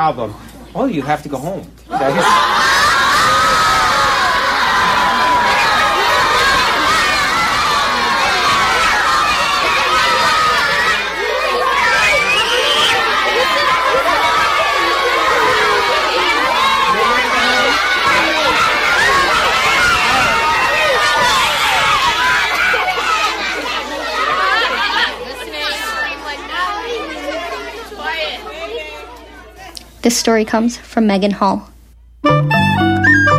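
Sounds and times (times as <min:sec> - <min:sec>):
speech: 0:00.0 - 0:02.8, 0:30.1 - 0:32.5
excited shouts: 0:01.9 - 0:29.0
large audience clapping and cheering: 0:02.3 - 0:23.9.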